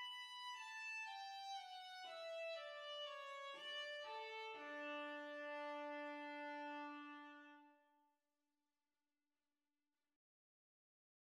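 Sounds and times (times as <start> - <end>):
viola duet at practice speed: 0.0 - 7.7.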